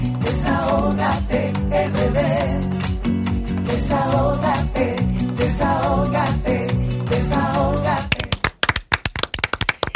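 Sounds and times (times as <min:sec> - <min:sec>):
music: 0:00.0 - 0:08.4
studio applause at show opening: 0:08.0 - 0:09.9.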